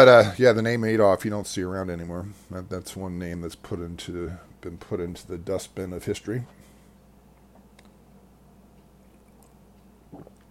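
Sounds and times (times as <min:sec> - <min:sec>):
speech: 0:00.0 - 0:06.6
low hum: 0:00.0 - 0:10.4
slurping a drink: 0:09.2 - 0:10.4.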